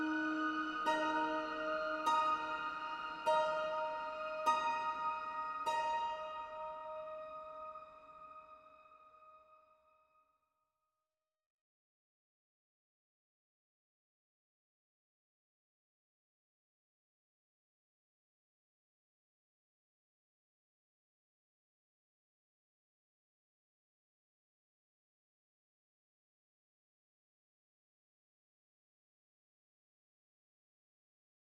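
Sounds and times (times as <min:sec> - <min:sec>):
ambient zither: 0:00.0 - 0:09.2.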